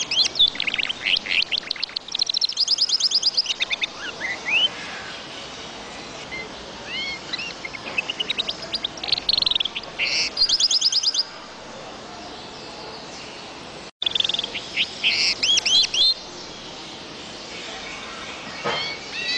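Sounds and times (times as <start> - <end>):
bird song: 0.0 - 19.3.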